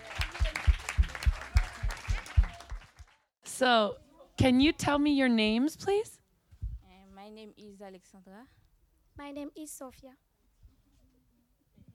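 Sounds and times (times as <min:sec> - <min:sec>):
faint crowd noise: 0:00.0 - 0:02.9
audience clapping: 0:00.0 - 0:03.3
speech: 0:03.6 - 0:06.2, 0:07.3 - 0:08.6, 0:09.2 - 0:10.2.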